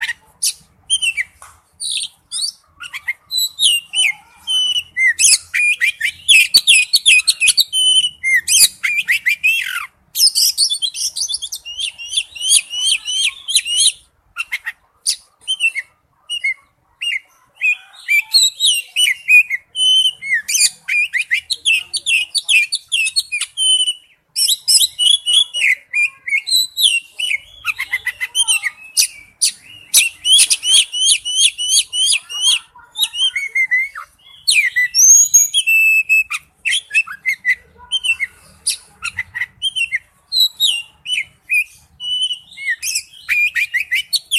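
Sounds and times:
Oriental magpie-robin singing whistles and chattering notes: 0.0s - 44.3s.

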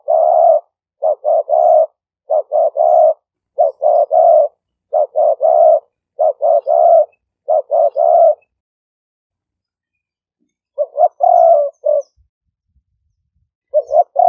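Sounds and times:
spotted dove cooing: 0.0s - 8.6s, 10.7s - 12.3s, 13.7s - 14.2s.

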